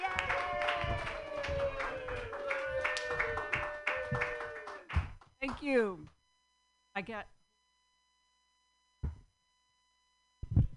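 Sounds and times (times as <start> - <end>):
comedy show audience clapping welcoming a comedian: 0.0 - 5.9
speech: 5.6 - 6.2, 7.0 - 7.4.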